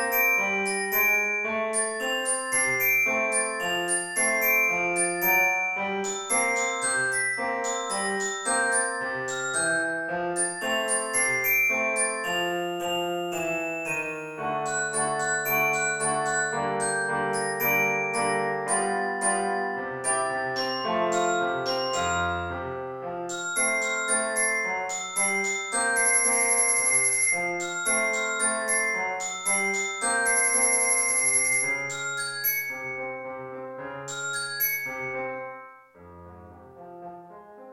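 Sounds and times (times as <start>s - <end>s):
orchestra bells: 0.0s - 35.8s
piano: 0.0s - 37.7s.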